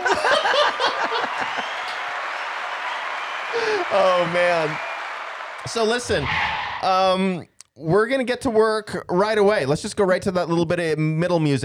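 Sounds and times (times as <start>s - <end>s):
laughter and chuckling voices: 0.0s - 5.0s
people clapping: 0.0s - 6.4s
speech: 3.8s - 4.9s, 5.6s - 11.6s.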